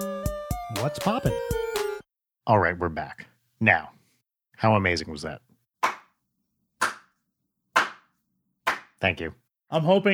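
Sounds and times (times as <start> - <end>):
speech: 0.8 - 1.6, 2.4 - 4.0, 4.6 - 5.4, 9.0 - 10.1
single person's slow hand claps: 5.8 - 6.1, 6.8 - 7.2, 7.8 - 8.1, 8.7 - 9.0.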